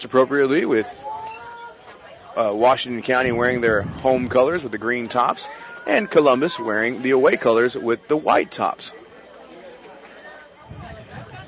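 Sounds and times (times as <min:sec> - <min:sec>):
speech: 0:00.0 - 0:01.2, 0:02.4 - 0:09.0
crowd chatter in the stands before a Washington County versus Columbus football game: 0:00.0 - 0:11.4.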